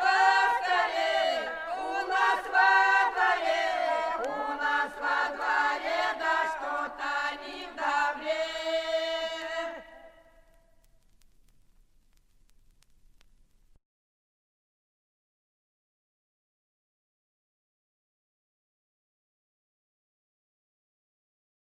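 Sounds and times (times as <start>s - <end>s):
Russian polyphonic singing: 0.0s - 10.4s.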